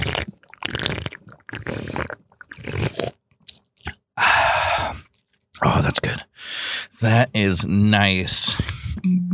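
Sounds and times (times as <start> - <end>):
person sipping caffeinated seltzer on the mic: 0.0 - 6.2, 8.5 - 9.2
speech: 7.0 - 8.7.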